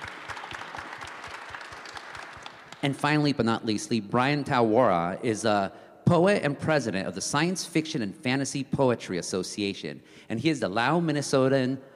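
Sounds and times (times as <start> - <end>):
audience applause: 0.0 - 2.8
speech: 2.8 - 11.9.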